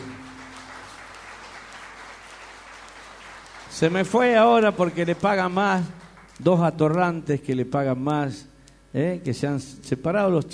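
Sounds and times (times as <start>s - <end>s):
audience applause: 0.0s - 6.4s
speech: 3.8s - 10.5s.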